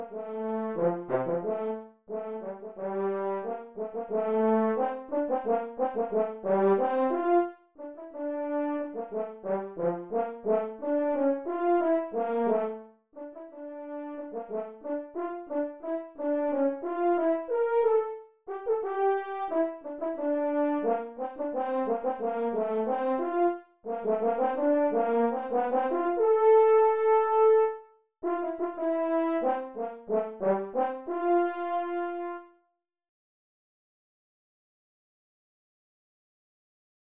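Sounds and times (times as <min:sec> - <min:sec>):
horn: 0:00.0 - 0:32.6.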